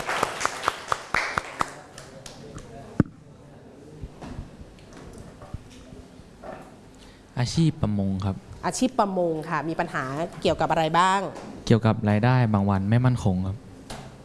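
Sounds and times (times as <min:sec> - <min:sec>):
classroom applause: 0:00.0 - 0:02.7
speech: 0:07.4 - 0:13.6.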